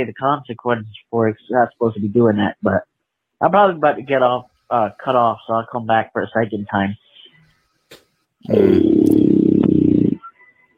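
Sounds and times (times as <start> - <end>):
speech: 0.0 - 7.1, 7.9 - 9.2
deep growl: 8.5 - 10.2.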